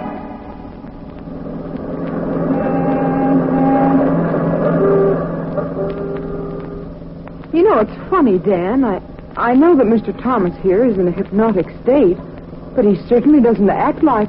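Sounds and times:
car driving, radio drama sound effect: 0.3s - 10.8s
speech: 7.8s - 14.2s.

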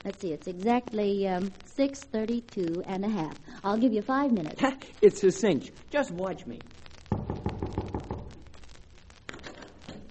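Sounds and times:
speech: 0.0s - 6.8s
knocking on a door: 7.1s - 8.4s.

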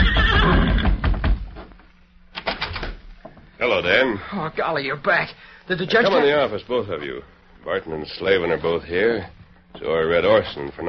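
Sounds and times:
horse neighing: 0.0s - 1.0s
speech: 3.8s - 10.8s.

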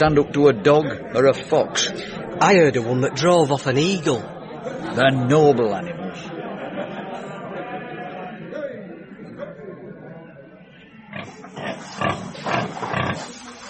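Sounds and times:
speech: 0.0s - 6.0s
laughter: 0.4s - 10.5s
pigs grunting and snorting: 11.1s - 13.6s.

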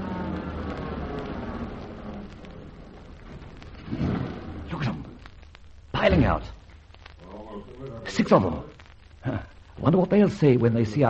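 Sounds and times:
car pulling up and stopping: 0.0s - 4.7s
speech: 6.1s - 6.6s, 8.3s - 11.0s.

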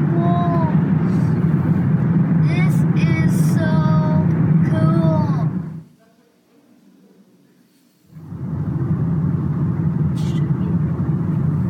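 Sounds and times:
vehicle engine and road rumble in a rocky tunnel: 0.0s - 5.8s, 8.2s - 11.6s.

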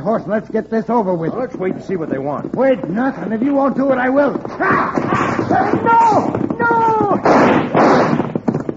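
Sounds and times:
speech: 0.0s - 7.6s
gunshot: 7.1s - 8.4s.

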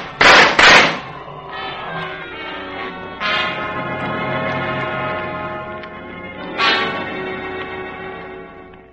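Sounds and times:
gunshots in a jungle lion-hunt adventure radio drama: 0.0s - 1.2s
harmonic drone: 0.0s - 8.9s.

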